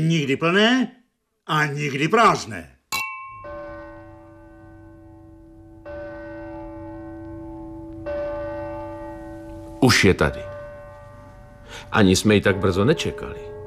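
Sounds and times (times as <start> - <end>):
speech: 0.0 - 2.8, 9.8 - 10.5, 11.7 - 13.5
church bell striking midnight: 3.1 - 13.6.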